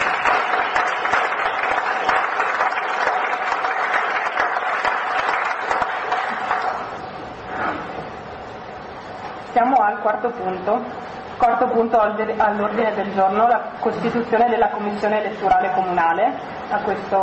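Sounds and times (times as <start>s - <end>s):
audience applause: 0.0s - 7.0s
speech: 10.0s - 17.2s.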